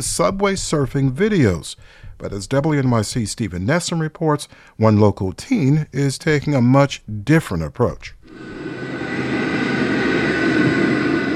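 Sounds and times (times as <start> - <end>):
speech: 0.0 - 8.6
subway train roaring through a subway tunnel: 8.3 - 11.3.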